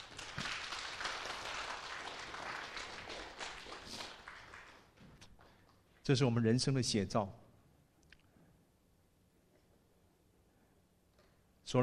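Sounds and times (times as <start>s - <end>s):
warm audience applause: 0.0s - 5.0s
speech: 6.1s - 7.5s.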